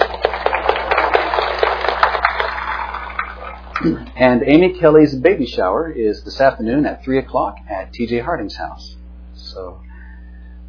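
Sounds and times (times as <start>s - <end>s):
audience clapping: 0.0s - 3.9s
speech: 3.8s - 9.9s.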